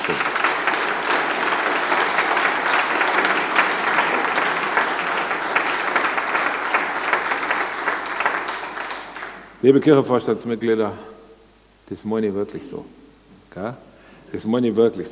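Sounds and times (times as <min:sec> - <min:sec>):
audience applause: 0:00.0 - 0:09.6
speech: 0:09.6 - 0:11.2, 0:11.9 - 0:13.0, 0:13.6 - 0:15.1.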